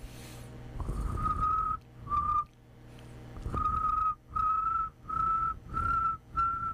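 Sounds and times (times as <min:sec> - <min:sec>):
person whistling an imitation of cricket chirps: 0:01.0 - 0:02.5, 0:03.6 - 0:06.7.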